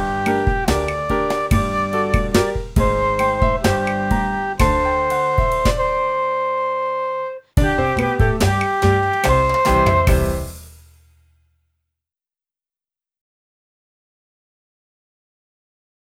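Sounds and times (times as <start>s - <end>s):
flute: 0.0s - 10.7s.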